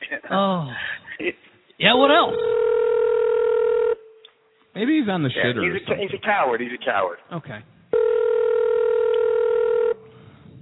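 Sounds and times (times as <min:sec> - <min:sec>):
speech: 0:00.2 - 0:02.6, 0:04.8 - 0:07.7
telephone dialing tones: 0:02.4 - 0:04.0, 0:08.0 - 0:10.0.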